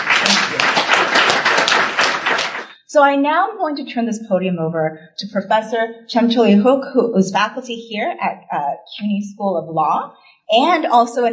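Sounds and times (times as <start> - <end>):
audience applause at an event at CUNY School of Law: 0.0 - 2.7
speech: 2.9 - 11.3.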